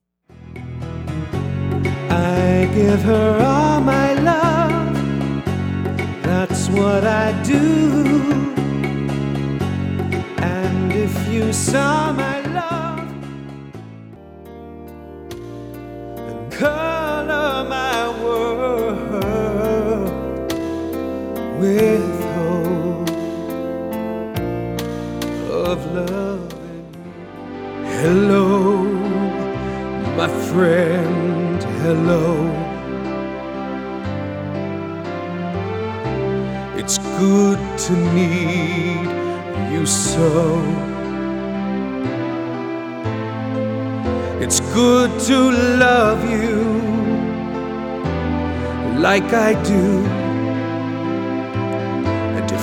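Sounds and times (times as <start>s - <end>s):
contemporary ballad music: 0.3s - 52.6s.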